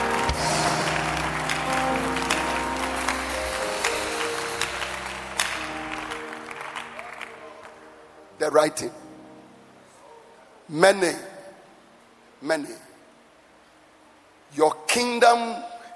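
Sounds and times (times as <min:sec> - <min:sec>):
low organ or keyboard tones: 0:00.0 - 0:07.6
audience clapping hands: 0:00.0 - 0:07.9
speech: 0:08.5 - 0:09.0, 0:10.7 - 0:11.3, 0:12.4 - 0:12.8, 0:14.5 - 0:15.7.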